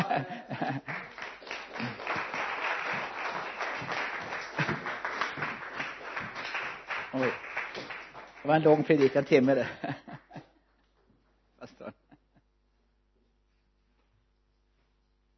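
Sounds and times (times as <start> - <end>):
laughter: 0.0 - 2.4, 4.2 - 5.4, 9.4 - 10.5, 11.6 - 12.2
audience applauding: 0.0 - 9.8
speech: 8.5 - 10.0.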